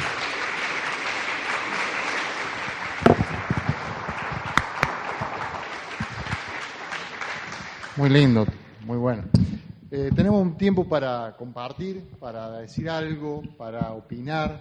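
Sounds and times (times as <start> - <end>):
crowd applauding: 0.0 - 8.8
speech: 8.0 - 14.5.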